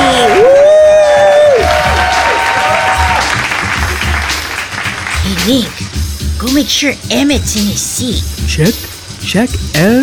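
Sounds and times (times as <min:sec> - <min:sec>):
audience applause: 0:00.0 - 0:05.8
speech: 0:05.5 - 0:05.8, 0:06.4 - 0:10.0.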